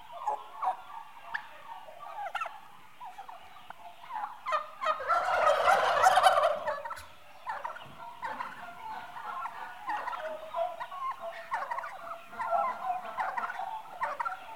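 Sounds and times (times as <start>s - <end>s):
eight-month-old livestock turkeys gobbling: 0.0s - 14.5s.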